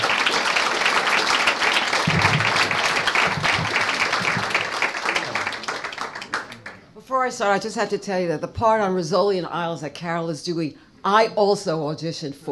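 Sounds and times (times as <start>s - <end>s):
audience applause: 0.0s - 6.8s
speech: 7.2s - 12.4s.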